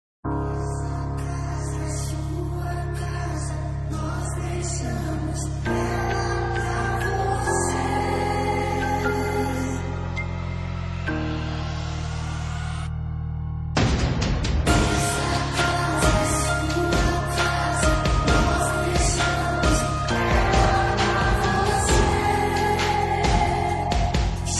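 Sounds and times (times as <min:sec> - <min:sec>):
electronic gospel remix: 0:00.3 - 0:12.9, 0:13.8 - 0:24.5.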